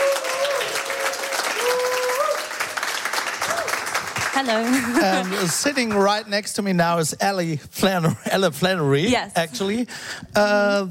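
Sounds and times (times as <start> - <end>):
tonal crowd cheers: 0.0 - 4.2
studio audience applause at a live show from Studio 1 in the Bikini: 0.0 - 6.6
speech: 4.4 - 10.8.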